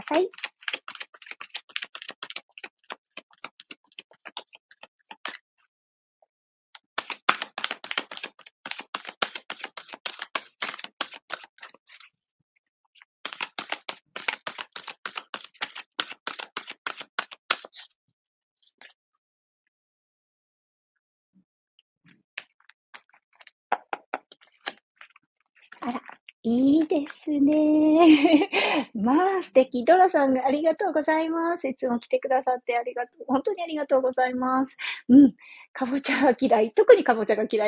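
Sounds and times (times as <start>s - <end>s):
speech: 0.0s - 0.5s, 27.2s - 37.6s
tarot cards being shuffled: 0.0s - 5.4s, 6.8s - 12.1s, 13.2s - 17.9s, 18.6s - 19.0s, 22.4s - 27.8s.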